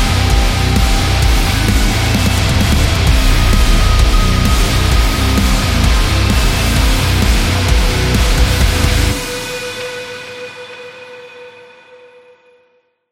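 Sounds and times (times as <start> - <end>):
high-energy background music for workouts: 0.0 - 9.6.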